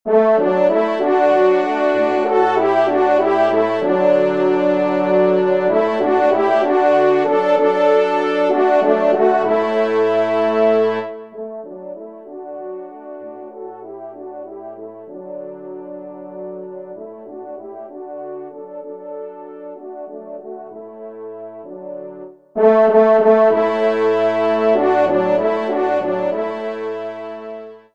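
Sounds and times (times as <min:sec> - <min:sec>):
trumpet playing a hymn: 0:00.1 - 0:27.8.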